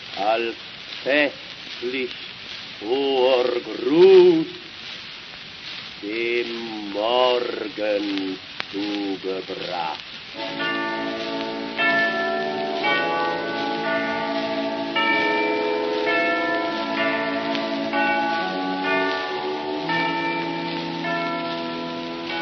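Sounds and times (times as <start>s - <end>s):
speech: 0.2s - 4.6s, 6.0s - 10.8s
deep ringing of Easter church bells: 10.4s - 22.4s.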